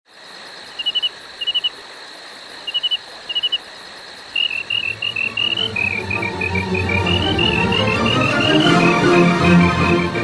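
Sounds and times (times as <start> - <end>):
crickets chirping in short pulsed bursts: 0.1 - 10.2
music: 4.7 - 10.2.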